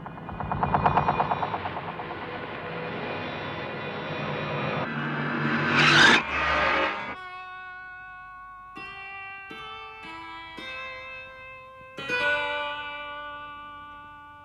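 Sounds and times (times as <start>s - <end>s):
reversed choir: 0.0s - 7.2s.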